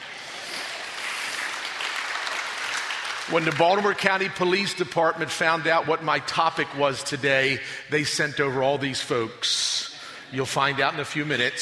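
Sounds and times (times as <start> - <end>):
audience clapping: 0.0 - 4.6
speech: 3.3 - 11.6.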